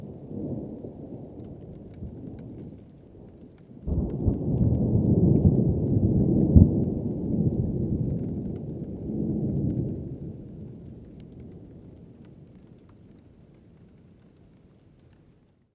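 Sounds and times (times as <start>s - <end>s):
thunderstorm on top of Chacaltaya mountain at 5300m in Bolivia: 0.0s - 12.4s.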